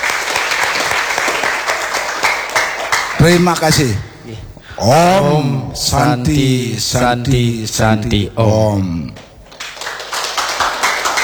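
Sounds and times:
children applauding: 0.0 - 3.2, 9.5 - 11.2
speech: 3.2 - 9.3.

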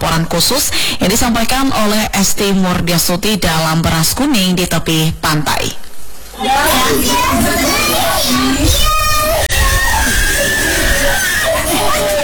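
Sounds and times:
children's voices: 0.0 - 12.2
speech: 0.2 - 5.8, 6.4 - 8.9
murmur of chatter: 6.3 - 12.2
baby crying loudly: 6.4 - 12.2.

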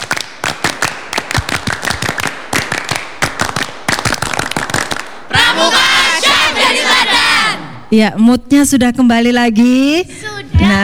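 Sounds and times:
scout group rhythmic hand clapping: 0.0 - 7.0
speech: 7.9 - 10.8.

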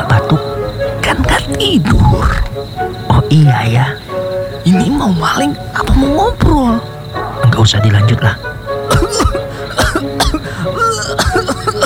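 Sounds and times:
laughter: 0.0 - 11.8
speech: 1.6 - 4.0, 7.6 - 8.5
person coughing: 8.9 - 11.8.

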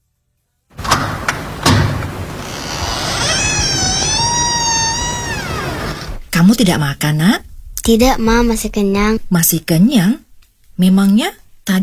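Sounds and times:
door opening: 0.7 - 6.7
speech: 6.4 - 10.2, 10.8 - 11.8.

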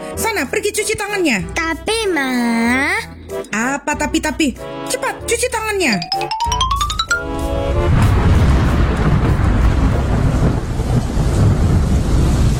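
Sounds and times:
speech: 0.2 - 7.4
heavy rain: 7.4 - 12.5.

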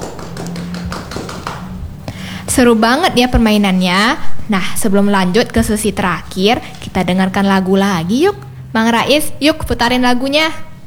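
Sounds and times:
applause: 0.0 - 1.8
speech: 2.6 - 10.7.

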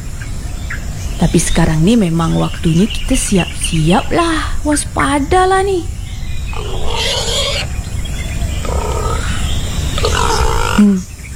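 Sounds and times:
steady low rumble: 0.0 - 11.3
speech: 1.2 - 6.0, 10.8 - 11.1
pig grunting: 6.5 - 11.1.

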